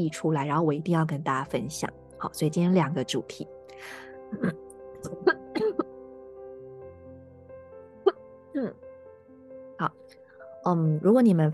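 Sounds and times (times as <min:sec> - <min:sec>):
speech: 0:00.0 - 0:04.6, 0:10.6 - 0:11.5
coughing: 0:04.3 - 0:05.9.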